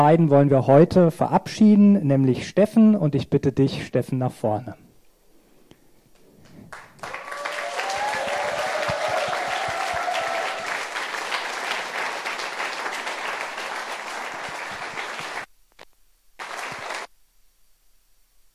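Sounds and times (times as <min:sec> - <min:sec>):
speech: 0:00.0 - 0:04.8
audience applause: 0:06.7 - 0:15.5, 0:16.4 - 0:17.1
cheers and whistles: 0:07.0 - 0:11.4.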